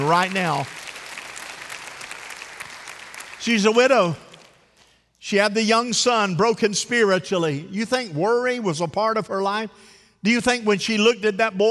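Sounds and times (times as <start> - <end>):
speech: 0.0 - 0.8, 3.4 - 4.2, 5.2 - 11.7
audience hand clapping: 0.0 - 5.0.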